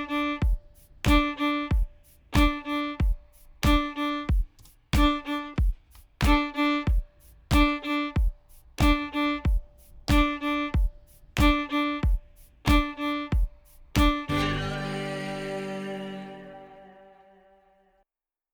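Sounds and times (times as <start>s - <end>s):
fiddle playing offbeat accents in eighth pairs on open D: 0.0s - 4.4s, 5.0s - 17.6s.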